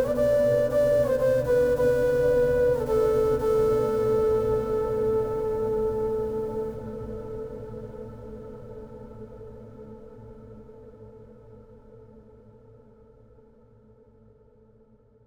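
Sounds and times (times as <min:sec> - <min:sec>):
latin flute playing: 0:00.0 - 0:07.4.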